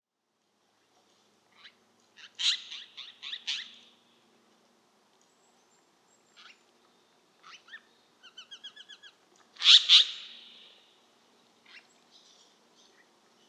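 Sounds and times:
Siberian jay giving a harsh squawk: 2.2 - 3.8, 9.6 - 10.5.

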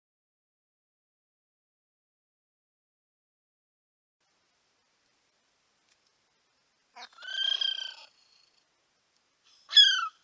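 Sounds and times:
Kiwi calling with shrill whistles: 9.6 - 10.2.

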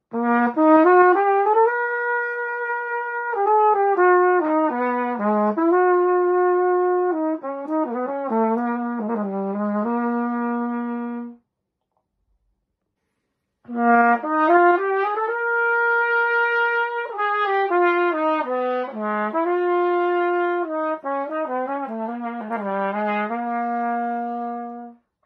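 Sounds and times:
trumpet: 0.0 - 11.4, 13.6 - 25.0.

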